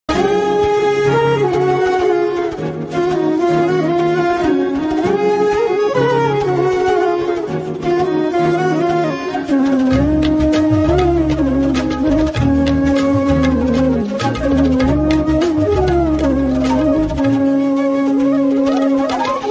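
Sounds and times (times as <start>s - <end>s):
flute: 0.1s - 19.4s.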